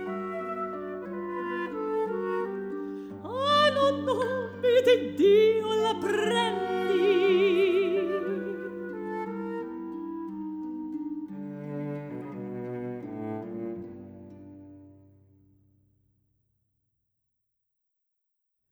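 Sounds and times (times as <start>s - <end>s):
folk song from Italy: 0.0s - 13.7s.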